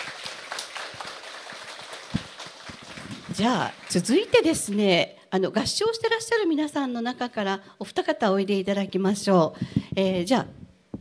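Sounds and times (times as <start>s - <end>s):
audience applause: 0.0s - 4.8s
speech: 3.4s - 10.6s.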